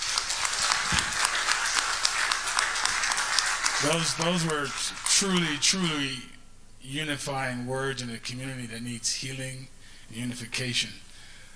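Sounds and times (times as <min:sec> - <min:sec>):
audience applause: 0:00.0 - 0:06.0
speech: 0:03.8 - 0:11.0.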